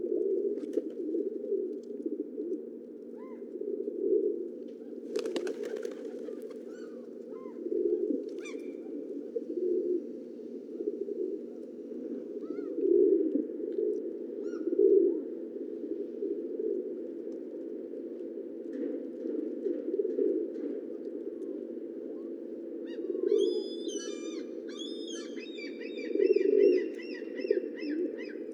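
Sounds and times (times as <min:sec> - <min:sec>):
pigeon cooing: 0:00.0 - 0:17.7, 0:19.4 - 0:28.5
bird whistle: 0:23.4 - 0:26.0.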